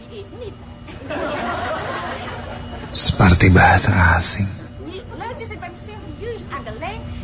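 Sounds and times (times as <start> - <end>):
people chatting: 0.0 - 0.6, 3.0 - 7.1
speech: 0.1 - 1.2, 3.0 - 4.6
people laughing: 0.9 - 3.2.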